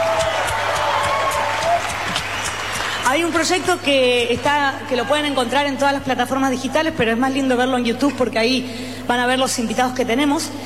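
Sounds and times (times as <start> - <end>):
audience applause: 0.0 - 3.6
crowd noise: 0.0 - 6.1
speech: 3.1 - 10.6.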